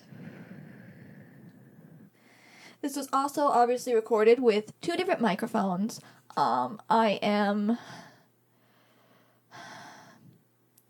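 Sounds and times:
heavy breathing into a microphone: 0.0 - 2.8, 7.8 - 10.4
faint steady low hum: 0.0 - 10.8
speech: 2.8 - 8.0.

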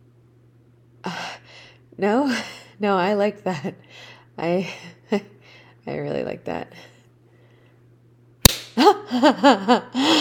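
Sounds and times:
speech: 1.9 - 6.9, 8.8 - 10.2
slap on skin: 8.5 - 8.8.

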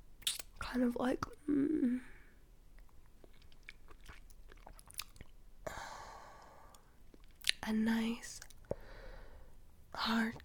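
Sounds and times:
hiss: 0.0 - 10.4
person eating a popsicle, chewing, biting and sucking: 0.2 - 0.6, 2.8 - 5.4
speech: 0.7 - 2.1, 7.7 - 8.5, 10.0 - 10.4.

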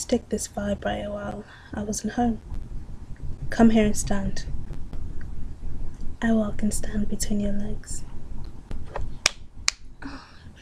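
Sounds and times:
speech: 0.1 - 2.7, 3.5 - 4.6, 6.2 - 8.1
slap on inner thighs: 8.9 - 9.8.

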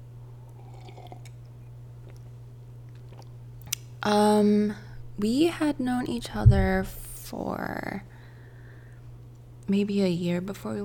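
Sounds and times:
person sipping a drink: 0.5 - 1.4, 2.9 - 3.3
speech: 4.0 - 8.1, 9.7 - 10.8.

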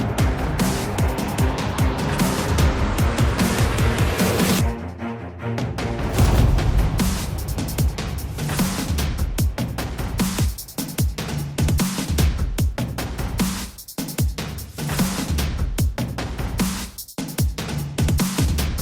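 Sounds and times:
orchestral dubstep music: 0.0 - 18.8.

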